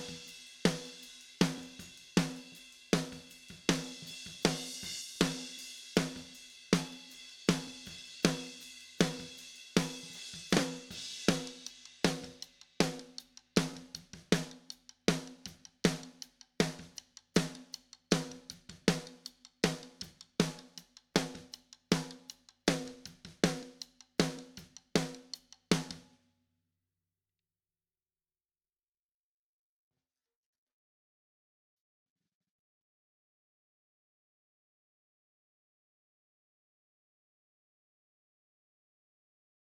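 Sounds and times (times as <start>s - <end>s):
snare drum: 0.0s - 26.0s.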